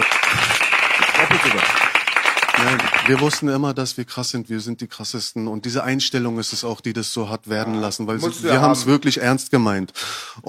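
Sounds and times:
hand clapping applause: 0:00.0 - 0:03.4
speech: 0:01.4 - 0:01.8, 0:02.7 - 0:10.4.

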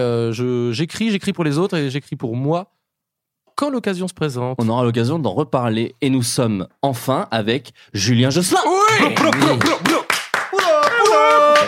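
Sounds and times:
speech: 0:00.0 - 0:02.8, 0:03.6 - 0:09.9
hand clapping: 0:08.9 - 0:11.6.

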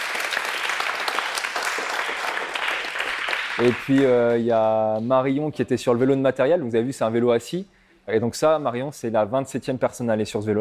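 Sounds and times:
audience applause: 0:00.0 - 0:04.5
speech: 0:03.6 - 0:10.5.

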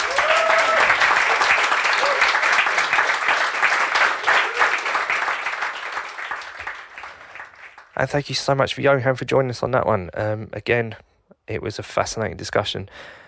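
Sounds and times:
crowd applauding loudly: 0:00.0 - 0:08.0
speech: 0:08.0 - 0:13.2.

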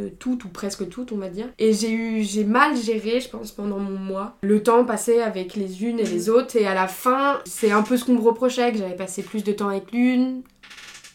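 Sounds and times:
speech: 0:00.0 - 0:10.8
chair creaking: 0:07.5 - 0:08.2, 0:10.6 - 0:11.1.

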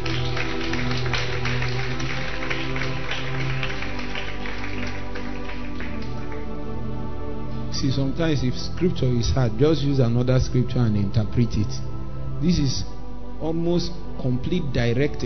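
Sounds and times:
audience applause: 0:00.0 - 0:06.5
speech: 0:07.8 - 0:15.2.

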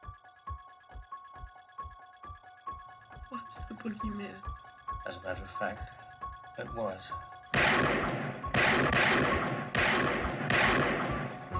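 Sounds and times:
speech: 0:03.3 - 0:06.0, 0:06.6 - 0:11.3
gunshots with long rumbling decay: 0:07.5 - 0:11.5.

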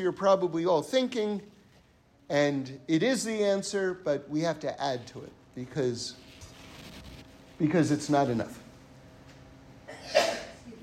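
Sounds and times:
speech: 0:00.0 - 0:01.5, 0:02.3 - 0:06.2, 0:07.6 - 0:08.6
person sneezing: 0:09.9 - 0:10.6.

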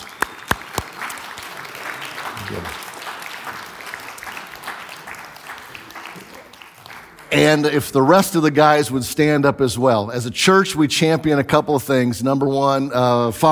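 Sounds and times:
church audience applause: 0:00.0 - 0:07.8
speech: 0:02.5 - 0:02.8, 0:07.3 - 0:13.5.

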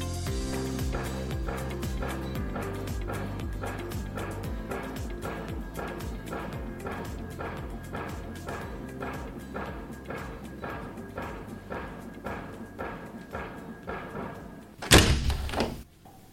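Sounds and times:
soft rhythmic knocks: 0:00.2 - 0:16.3
studio window being shut: 0:14.8 - 0:15.8.

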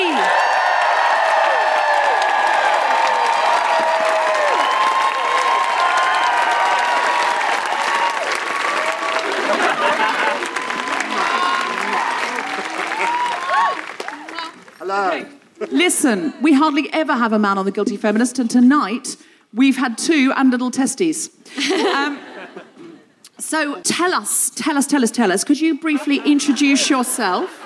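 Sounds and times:
live audience applause: 0:00.0 - 0:15.1
laughter: 0:08.8 - 0:14.6, 0:21.5 - 0:23.1, 0:25.9 - 0:27.6
speech: 0:16.1 - 0:22.7, 0:23.4 - 0:27.6.

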